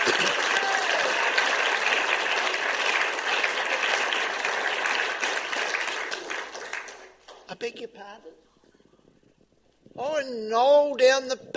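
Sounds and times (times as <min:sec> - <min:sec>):
audience clapping: 0:00.0 - 0:07.6
speech: 0:07.6 - 0:08.5, 0:10.0 - 0:11.5.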